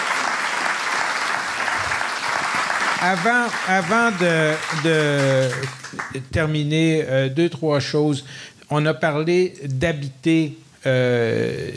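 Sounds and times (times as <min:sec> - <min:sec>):
audience applause: 0:00.0 - 0:06.2
speech: 0:03.0 - 0:11.7.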